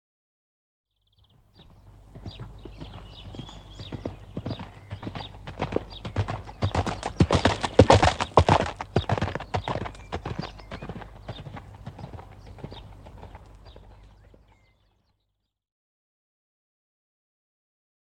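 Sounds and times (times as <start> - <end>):
horse cantering hooves on gravel: 1.6 - 14.8.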